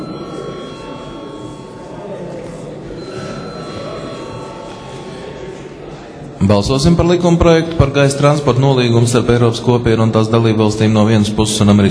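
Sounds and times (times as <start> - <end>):
parliament chamber bell ringing: 0.0 - 5.8
speech: 6.4 - 11.8.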